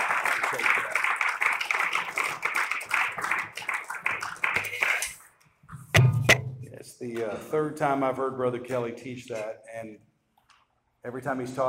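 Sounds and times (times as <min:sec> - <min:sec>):
audience clapping: 0:00.0 - 0:05.2
speech: 0:07.0 - 0:10.1, 0:11.0 - 0:11.6.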